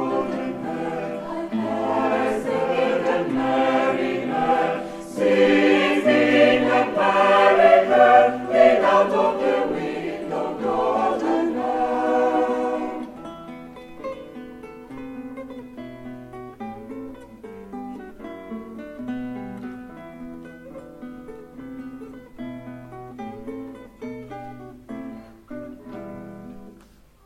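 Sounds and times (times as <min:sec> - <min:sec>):
SATB choir singing: 0:00.0 - 0:13.3.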